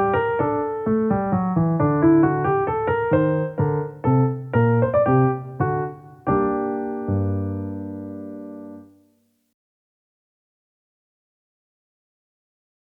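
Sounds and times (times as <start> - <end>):
piano minuet in G minor: 0.0 - 9.5.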